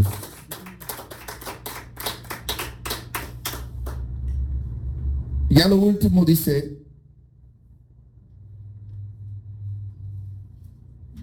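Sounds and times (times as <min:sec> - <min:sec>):
audience clapping hands: 0:00.0 - 0:04.1
speech: 0:05.5 - 0:06.9.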